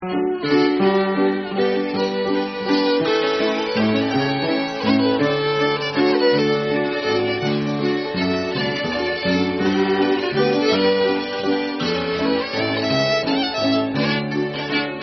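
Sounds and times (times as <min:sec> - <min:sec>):
waltz music in D: 0:00.0 - 0:15.0.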